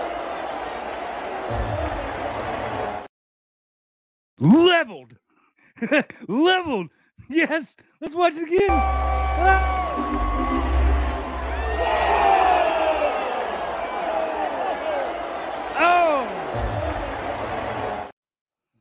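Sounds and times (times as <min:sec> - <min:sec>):
crowd cheering: 0:00.0 - 0:03.1, 0:08.6 - 0:18.2
speech: 0:04.4 - 0:05.2, 0:05.8 - 0:10.5.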